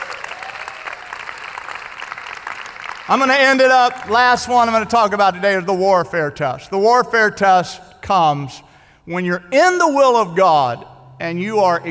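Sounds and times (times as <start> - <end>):
audience clapping hands: 0.0 - 4.8
speech: 3.1 - 11.9.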